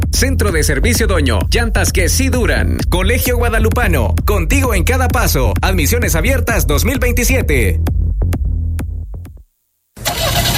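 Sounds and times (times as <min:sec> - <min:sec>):
speech: 0:00.2 - 0:08.0
car engine starting: 0:10.0 - 0:10.5.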